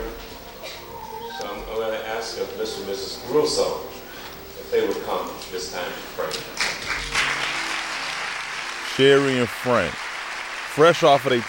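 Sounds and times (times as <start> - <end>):
speech: 1.7 - 4.0, 4.7 - 6.6, 9.0 - 10.0, 10.8 - 11.4
church audience applauding: 5.9 - 11.4.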